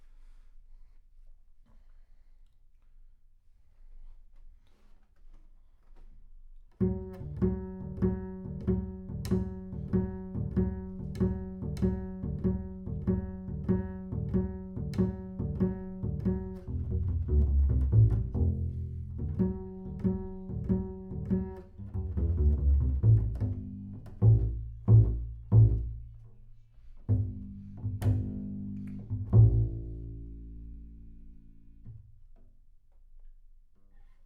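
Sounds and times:
bass sound: 6.8s - 26.2s, 27.1s - 31.9s.

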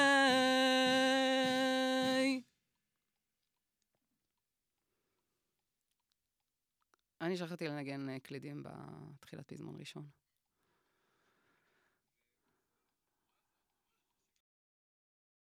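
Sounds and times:
vocals: 0.0s - 2.5s, 7.2s - 10.1s.

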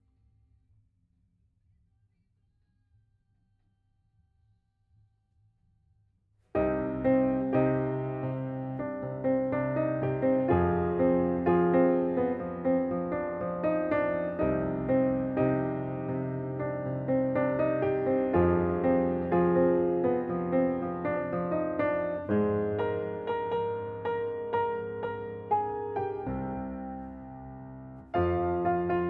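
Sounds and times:
piano: 6.5s - 29.0s.

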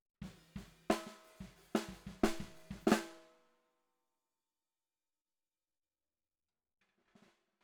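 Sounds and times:
bottom snare drum: 0.2s - 3.3s.

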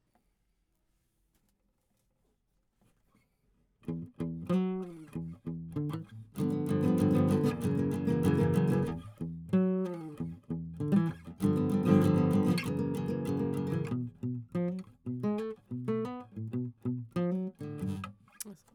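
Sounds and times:
guitar: 3.8s - 18.7s.

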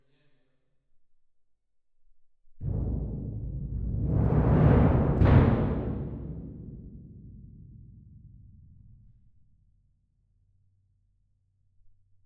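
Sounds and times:
percussion: 2.6s - 9.9s.

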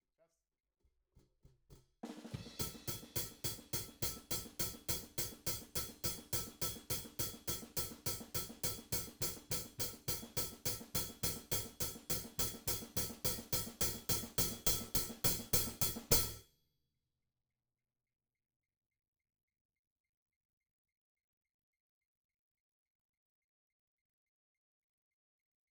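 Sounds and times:
hi-hat: 2.4s - 16.4s.

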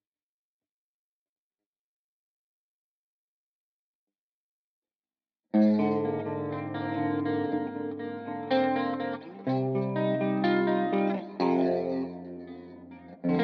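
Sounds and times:
guitar: 5.6s - 13.4s.

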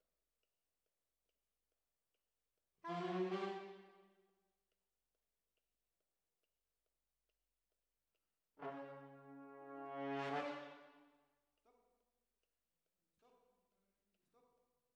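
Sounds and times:
trombone: 8.6s - 10.8s.

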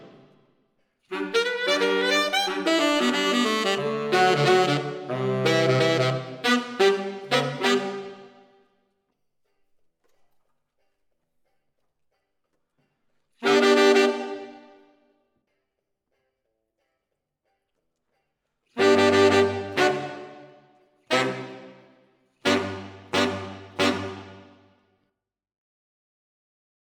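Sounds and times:
saxophones playing: 0.0s - 0.2s, 1.1s - 8.4s, 13.4s - 14.7s, 18.8s - 20.5s, 21.1s - 21.8s, 22.4s - 24.6s.

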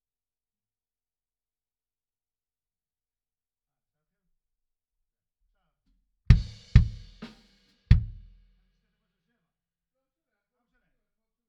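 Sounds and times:
bass drum hit: 6.3s - 7.2s, 7.9s - 8.3s.

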